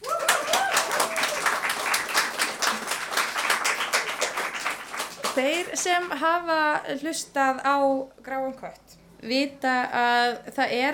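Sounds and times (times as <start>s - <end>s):
audience applause: 0.0s - 5.8s
speech: 5.4s - 10.9s.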